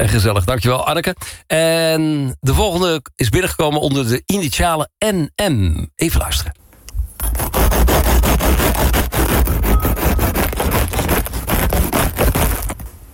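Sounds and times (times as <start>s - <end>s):
speech: 0.0s - 6.6s
cutting freshly baked bread: 7.2s - 12.9s.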